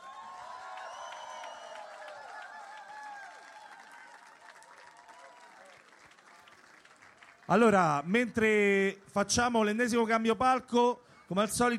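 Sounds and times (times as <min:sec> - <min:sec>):
audience applause: 0:00.0 - 0:07.8
speech: 0:07.5 - 0:11.7.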